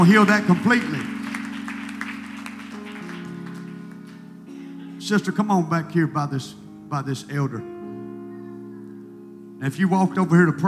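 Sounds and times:
speech: 0.0 - 1.1, 5.0 - 7.7, 9.6 - 10.6
audience clapping hands: 0.0 - 4.4.

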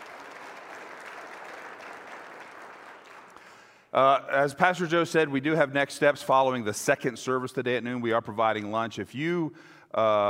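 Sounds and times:
audience round of applause: 0.0 - 3.6
speech: 3.9 - 10.2.

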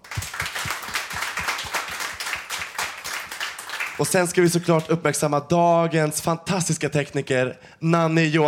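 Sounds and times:
crowd applause: 0.0 - 4.7
speech: 4.0 - 8.4.

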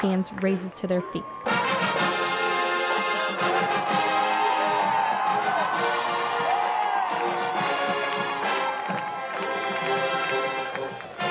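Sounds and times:
speech: 0.0 - 1.5
crowd clapping along: 0.0 - 11.2
marching band drums pounding a steady beat: 1.5 - 11.2.

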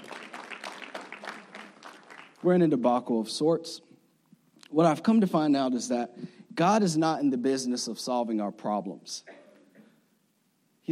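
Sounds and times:
audience clapping: 0.0 - 2.5
speech: 2.4 - 3.9, 4.7 - 9.4.

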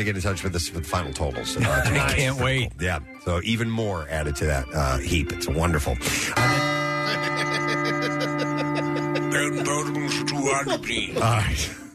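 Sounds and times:
speech: 0.0 - 7.6, 9.4 - 11.8
laughter: 1.5 - 2.5, 6.2 - 11.9
bell ringing: 6.4 - 11.3.

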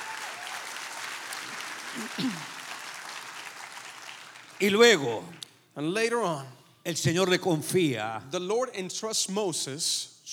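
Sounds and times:
church congregation applauding during a sermon: 0.0 - 5.5
speech: 2.0 - 2.6, 4.6 - 10.3.

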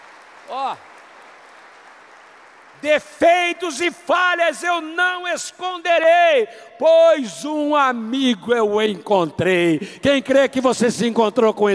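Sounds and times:
audience applauding: 0.0 - 3.6
speech: 0.5 - 0.9, 2.8 - 11.7.

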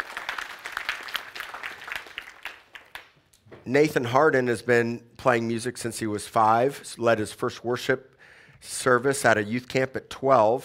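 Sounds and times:
crowd applauding: 0.0 - 3.2
speech: 3.7 - 10.6.

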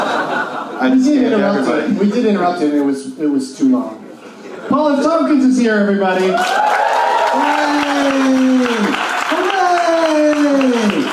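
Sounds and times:
laughter: 0.0 - 2.6, 4.0 - 5.3
speech: 0.8 - 4.0, 4.7 - 6.6
person cheering: 6.3 - 11.1.

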